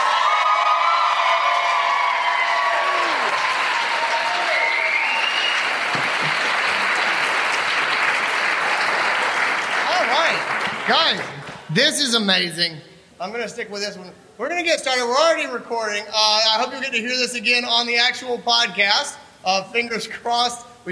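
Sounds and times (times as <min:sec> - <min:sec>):
audience applause: 0:00.0 - 0:11.7
speech: 0:10.9 - 0:20.9.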